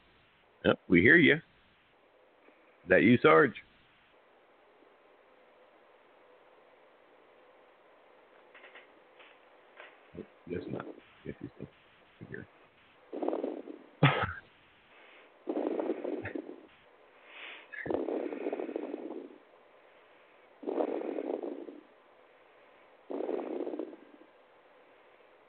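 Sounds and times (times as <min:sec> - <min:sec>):
speech: 0:00.6 - 0:01.5, 0:02.9 - 0:03.7, 0:10.5 - 0:12.6
heavy breathing picked up by microphone: 0:14.3 - 0:24.2.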